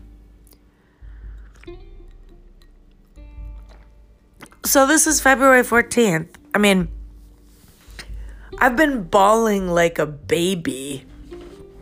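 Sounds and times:
sipping rosé wine from a glass: 0:00.4 - 0:04.7
speech: 0:04.7 - 0:07.0, 0:08.6 - 0:11.1.

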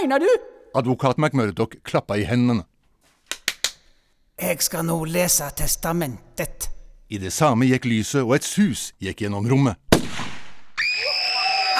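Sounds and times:
speech: 0:00.0 - 0:02.7, 0:04.4 - 0:10.3
gunshot: 0:09.9 - 0:10.8.

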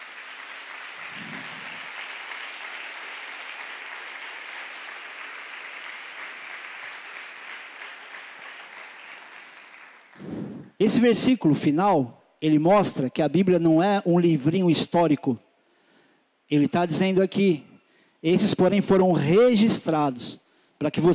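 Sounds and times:
audience applauding: 0:00.0 - 0:10.8
speech: 0:10.8 - 0:15.4, 0:16.5 - 0:21.1.

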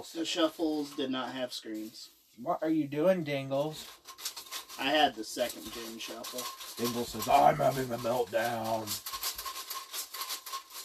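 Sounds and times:
speech: 0:00.0 - 0:09.1
window blinds being shaken, thin slats rattling: 0:03.8 - 0:10.8.

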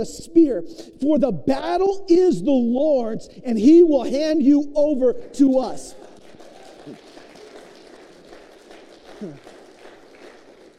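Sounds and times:
speech: 0:00.0 - 0:06.1, 0:09.2 - 0:09.5
audience applause: 0:06.0 - 0:10.7.

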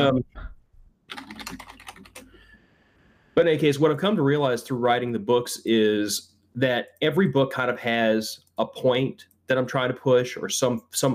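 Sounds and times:
speech: 0:00.0 - 0:00.5, 0:03.4 - 0:11.1
computer keyboard typing a link into a chat: 0:01.1 - 0:02.4.

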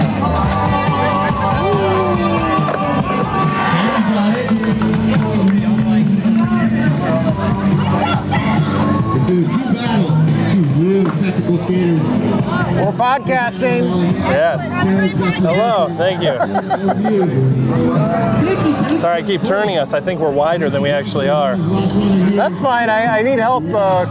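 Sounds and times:
dense crowd hubbub of many overlapping voices: 0:00.0 - 0:24.0
laughter: 0:00.8 - 0:08.7, 0:16.0 - 0:18.9
whoops and shouts from the crowd: 0:01.1 - 0:04.1
speech: 0:13.1 - 0:24.0.

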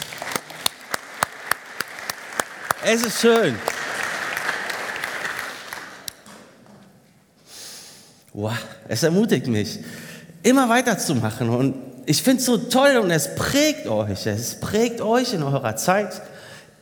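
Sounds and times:
audience applause: 0:00.0 - 0:06.3
speech: 0:02.8 - 0:03.7, 0:08.4 - 0:16.4.

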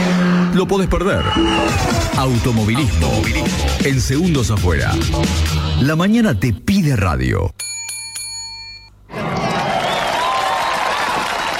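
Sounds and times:
speech: 0:00.6 - 0:07.6
loud applause: 0:09.1 - 0:11.5.

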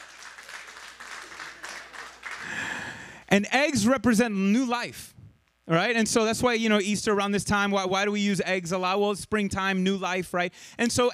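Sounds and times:
audience applause: 0:00.0 - 0:03.0
speech: 0:03.3 - 0:11.1.

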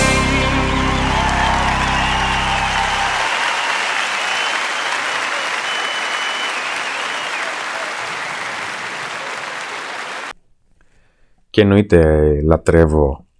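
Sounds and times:
applause at live performance: 0:00.2 - 0:10.3
speech: 0:11.6 - 0:13.2.

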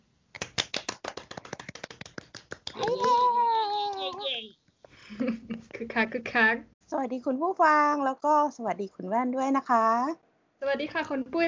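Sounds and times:
hand clapping: 0:00.3 - 0:04.4
speech: 0:04.4 - 0:11.4.

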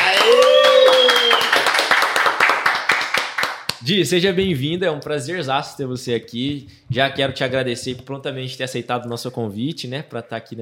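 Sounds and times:
people clapping: 0:00.0 - 0:03.9
speech: 0:03.9 - 0:10.6.

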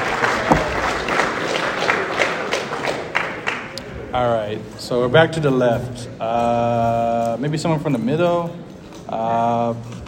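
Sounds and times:
audience round of applause: 0:00.0 - 0:03.8
speech: 0:04.2 - 0:10.0.

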